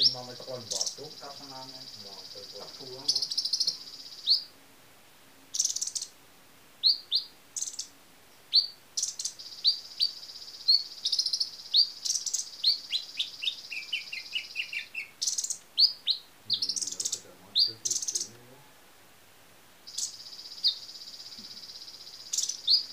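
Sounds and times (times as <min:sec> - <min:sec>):
small bird chirping: 0:00.0 - 0:04.6, 0:05.4 - 0:06.2, 0:06.8 - 0:18.9, 0:19.8 - 0:22.9.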